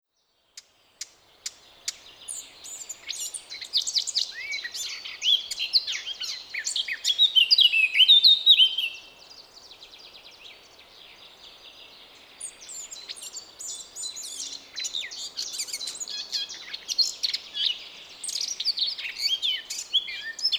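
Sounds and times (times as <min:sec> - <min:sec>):
hiss: 0:00.5 - 0:20.5
Eurasian blackcap singing: 0:01.5 - 0:09.0, 0:12.4 - 0:20.5.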